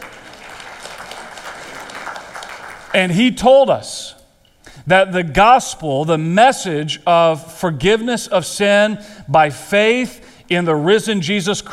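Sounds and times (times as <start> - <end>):
church congregation clapping during a sermon: 0.0 - 3.8
speech: 2.9 - 4.2, 4.8 - 11.7.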